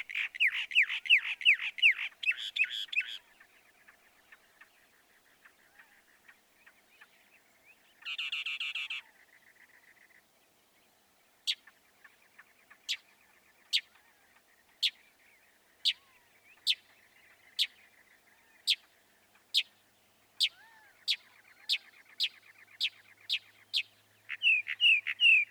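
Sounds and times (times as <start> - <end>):
Northern mockingbird song with harsh notes: 0.0 - 25.4.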